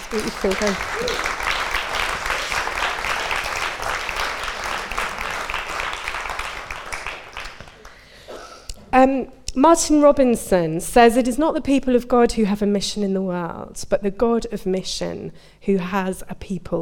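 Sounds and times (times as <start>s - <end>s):
audience applause: 0.0s - 8.1s
speech: 0.1s - 1.4s, 8.9s - 16.7s.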